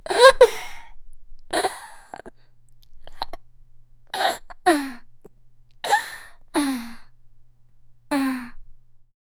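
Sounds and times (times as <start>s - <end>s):
little girl gulping hard: 1.5s - 3.4s, 4.1s - 5.0s, 5.9s - 7.0s, 8.1s - 8.6s.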